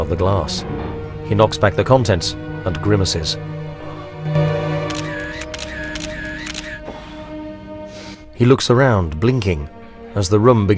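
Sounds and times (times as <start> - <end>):
speech: 0.0 - 3.6, 8.4 - 10.7
steady low droning hum: 0.0 - 10.5
camera shutter snapping: 4.9 - 6.8.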